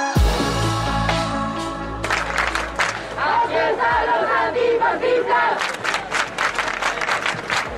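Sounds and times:
large protest crowd chanting and shouting: 0.1s - 6.2s
cheering and clapping: 1.1s - 4.4s, 5.2s - 7.7s.

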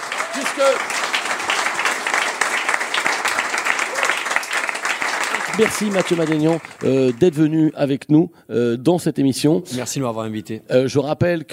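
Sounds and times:
audience applause: 0.0s - 7.5s
speech: 0.4s - 1.0s, 5.6s - 11.5s
faint voices and whoops: 3.8s - 4.3s.

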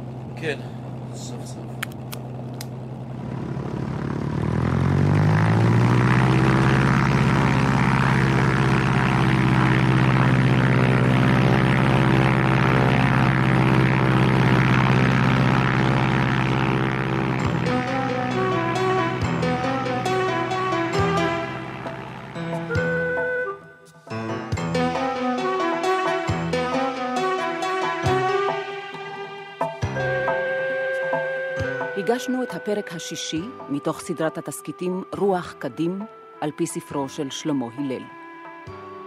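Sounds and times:
propeller airplane engine roaring during takeoff: 0.0s - 23.6s, 24.5s - 32.0s
speech: 0.4s - 2.0s, 32.2s - 38.2s.

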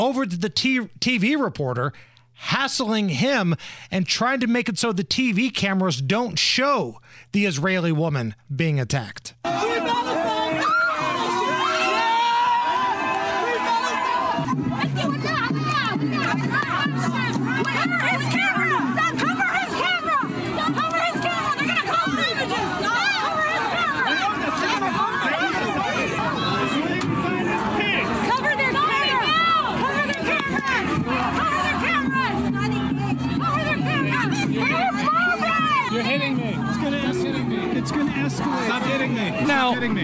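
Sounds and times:
speech: 0.0s - 10.1s
protest crowd screaming and shouting: 9.4s - 40.0s.

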